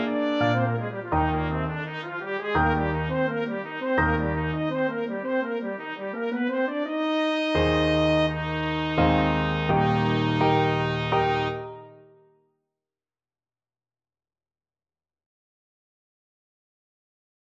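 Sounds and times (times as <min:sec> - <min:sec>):
trumpet: 0:00.0 - 0:12.2.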